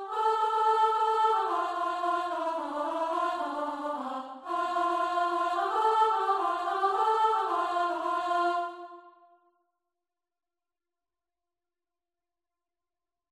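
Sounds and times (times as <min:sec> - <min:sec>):
choir singing: 0:00.0 - 0:09.3.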